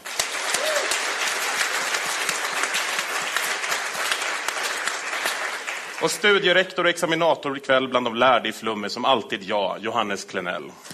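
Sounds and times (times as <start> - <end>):
audience applause: 0.0 - 6.7
speech: 6.0 - 10.9.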